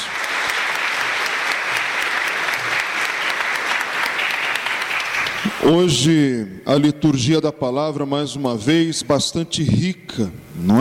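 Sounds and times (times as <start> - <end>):
audience applause: 0.0 - 5.7
speech: 5.7 - 10.8.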